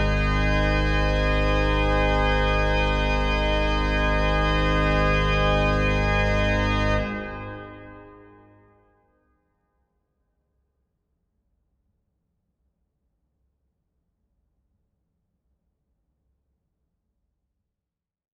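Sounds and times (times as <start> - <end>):
organ postlude in G: 0.0 - 8.6.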